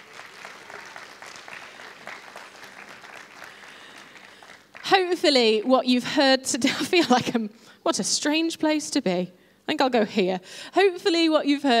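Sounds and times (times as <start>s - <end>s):
audience applause: 0.0s - 5.1s
speech: 4.9s - 11.7s.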